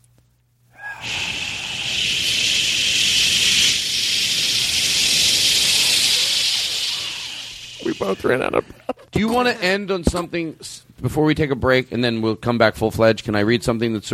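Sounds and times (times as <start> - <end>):
people making hissing sounds into microphone: 0.8 - 8.8
speech: 8.0 - 14.1.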